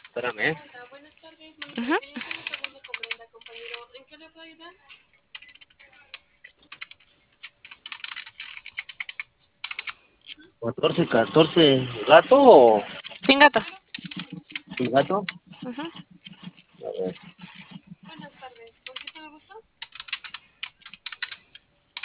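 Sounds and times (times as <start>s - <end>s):
speech: 0.2s - 2.3s, 4.1s - 5.0s, 10.6s - 13.8s, 14.8s - 16.1s, 16.8s - 17.4s
keypad clicks entering a code: 1.6s - 3.8s, 5.3s - 10.0s, 13.0s - 16.6s, 17.2s - 19.2s, 19.8s - 22.0s.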